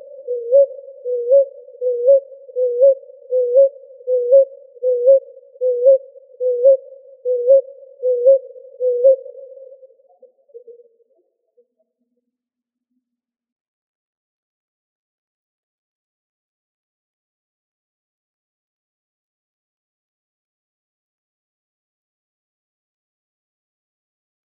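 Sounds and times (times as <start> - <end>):
ruddy ground dove cooing in Arizona: 0.0 - 10.8.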